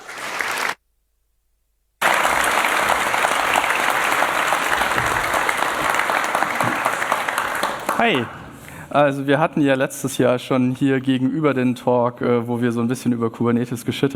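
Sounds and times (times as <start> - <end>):
audience applause welcoming speakers: 0.0 - 0.8, 2.0 - 8.7
speech: 8.0 - 14.1.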